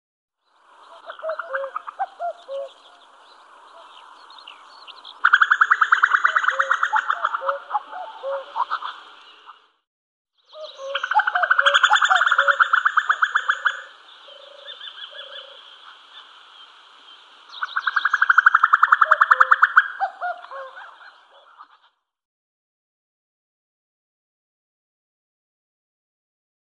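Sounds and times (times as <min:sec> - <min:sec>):
common cuckoo calling its two-note cu-coo: 0:00.8 - 0:09.6, 0:10.5 - 0:16.3, 0:17.5 - 0:21.9.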